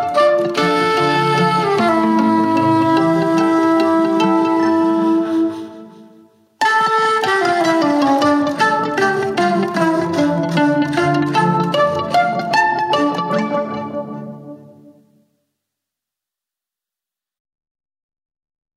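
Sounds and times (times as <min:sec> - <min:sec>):
waltz music: 0:00.0 - 0:06.0, 0:06.6 - 0:15.2.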